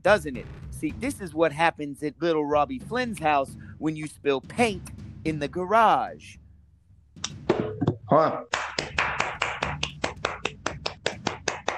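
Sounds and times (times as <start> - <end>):
speech: 0.0 - 6.4, 8.1 - 8.9
person clapping hands: 8.5 - 11.7.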